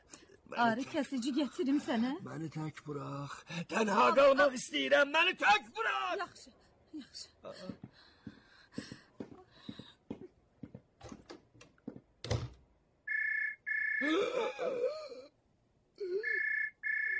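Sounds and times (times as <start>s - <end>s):
speech: 0.5s - 8.1s
telephone ringing in a Turkish-language drama: 13.1s - 14.1s, 16.2s - 17.1s.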